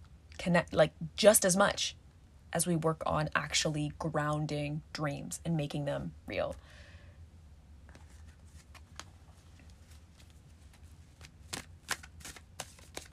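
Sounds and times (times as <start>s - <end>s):
speech: 0.4s - 6.8s
tarot cards being shuffled, handled and drawn: 7.9s - 13.1s
crisp tarot card snaps: 11.2s - 13.1s.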